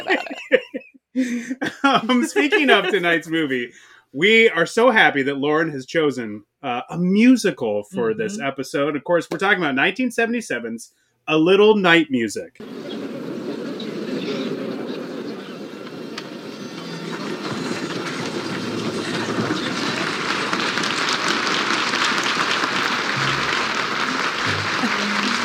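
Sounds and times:
applause at start of movie trailer: 0:00.0 - 0:00.3, 0:02.0 - 0:03.2, 0:17.0 - 0:25.4
speech: 0:00.0 - 0:00.6, 0:01.2 - 0:13.3
laughter: 0:00.0 - 0:04.4, 0:08.0 - 0:08.5, 0:12.6 - 0:15.9, 0:23.1 - 0:25.4.

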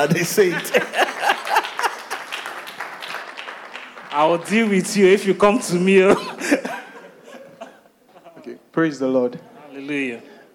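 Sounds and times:
speech: 0:00.0 - 0:01.1, 0:04.1 - 0:06.6, 0:08.8 - 0:10.3
laughter: 0:00.0 - 0:02.4, 0:05.9 - 0:08.6
crowd clapping: 0:00.0 - 0:05.5.

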